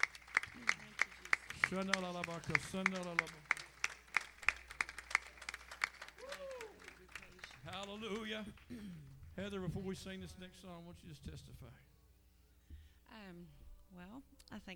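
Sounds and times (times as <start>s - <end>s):
church congregation hand clap of praise: 0.0s - 10.4s
speech: 1.7s - 3.5s, 7.8s - 11.9s, 13.2s - 14.7s.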